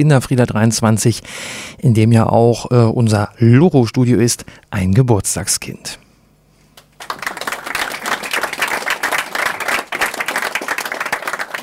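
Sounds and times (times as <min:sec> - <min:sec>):
speech: 0:00.0 - 0:06.0
audience applause at a library celebration: 0:07.0 - 0:11.6.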